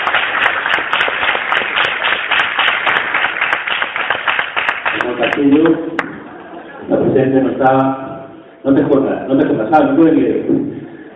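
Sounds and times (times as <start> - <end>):
audience applause: 0.0 - 6.1
speech: 5.2 - 6.0, 6.9 - 10.8.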